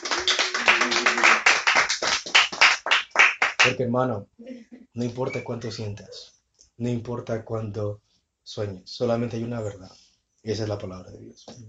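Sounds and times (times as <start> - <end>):
audience clapping hands: 0.0 - 3.8
speech: 3.6 - 11.6.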